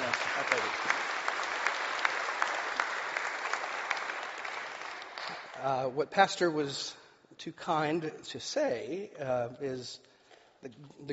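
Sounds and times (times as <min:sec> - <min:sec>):
audience applause at a church gathering: 0:00.0 - 0:05.6
speech: 0:05.6 - 0:11.1.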